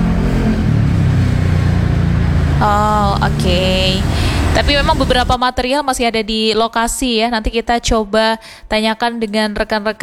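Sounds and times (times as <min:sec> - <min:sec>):
vehicles driving along a newly asphalted road: 0:00.0 - 0:05.4
speech: 0:02.6 - 0:10.0.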